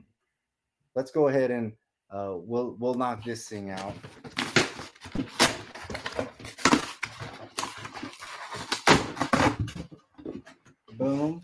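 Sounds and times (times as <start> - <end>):
speech: 1.0 - 4.3
cardboard box being opened: 3.8 - 10.6.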